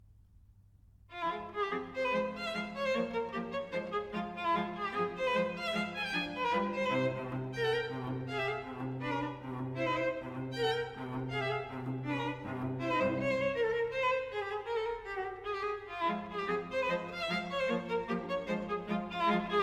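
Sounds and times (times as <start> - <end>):
string trio playing: 1.1 - 19.6.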